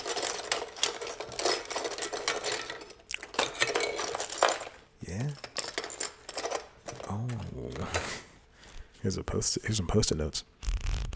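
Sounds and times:
someone rummaging through a drawer: 0.0s - 8.2s
speech: 9.0s - 10.6s.

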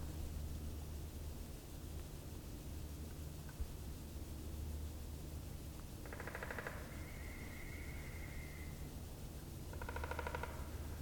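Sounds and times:
hiss and low rumble: 0.0s - 10.9s
woodpecker drumming on a tree: 6.0s - 6.9s, 9.7s - 10.8s.

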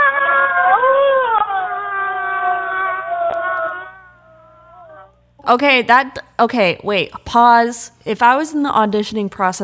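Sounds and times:
recorded human scream from online archive: 0.0s - 5.2s
speech: 5.5s - 9.6s.

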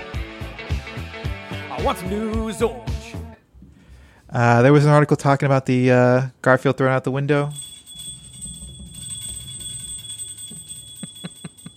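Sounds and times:
speech: 1.8s - 2.9s, 4.3s - 7.6s
dog ringing a bell to go outside: 7.5s - 11.7s.

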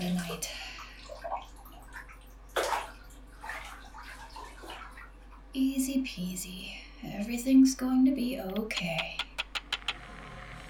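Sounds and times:
water running into a bathtub: 0.0s - 6.3s
speech: 5.6s - 9.2s.

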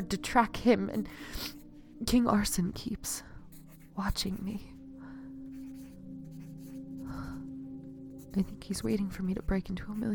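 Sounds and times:
speech: 0.0s - 3.3s, 4.0s - 4.7s, 8.4s - 10.1s
low steady tone: 0.0s - 10.1s
pen writing in a journal: 3.5s - 4.7s, 5.5s - 7.4s, 8.1s - 10.1s.

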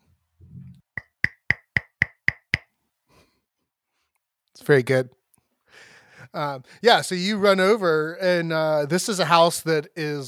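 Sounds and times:
knocking on a front door: 1.0s - 2.6s
speech: 4.6s - 5.2s, 5.8s - 10.2s.

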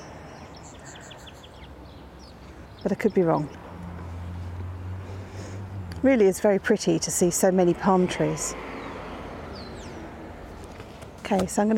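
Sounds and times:
song sparrow singing near palm trees in California: 0.0s - 3.7s, 6.2s - 10.2s
speech: 2.8s - 3.6s, 6.0s - 8.6s, 11.3s - 11.7s.

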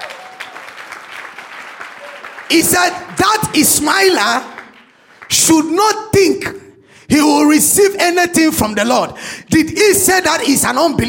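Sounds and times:
audience clapping: 0.0s - 5.7s
speech: 2.5s - 4.5s, 5.4s - 11.0s.

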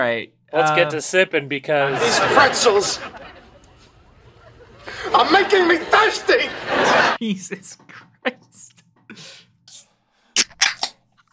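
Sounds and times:
speech: 0.0s - 3.4s, 5.1s - 9.4s
laughter: 1.7s - 8.1s
soda can popping open: 10.4s - 11.0s.

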